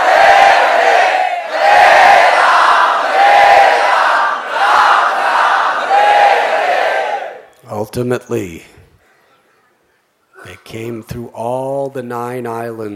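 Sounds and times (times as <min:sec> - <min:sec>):
devotees loudly chanting the holy name: 0:00.0 - 0:07.4
speech: 0:07.9 - 0:08.8, 0:10.6 - 0:12.9.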